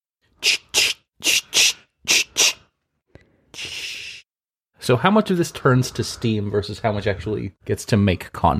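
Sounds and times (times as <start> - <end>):
squirt bottle spraying: 0.4 - 2.6
speech: 4.9 - 8.5.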